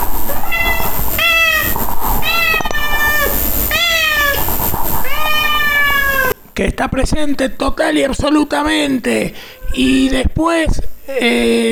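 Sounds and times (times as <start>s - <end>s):
cat meowing: 0.0s - 6.4s, 9.4s - 10.0s
speech: 6.8s - 11.7s.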